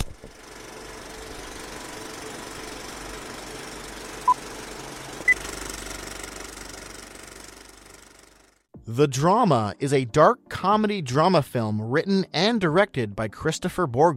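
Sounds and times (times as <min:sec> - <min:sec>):
film projector warming up with reels spinning: 0:00.0 - 0:08.7
speech: 0:08.9 - 0:14.1.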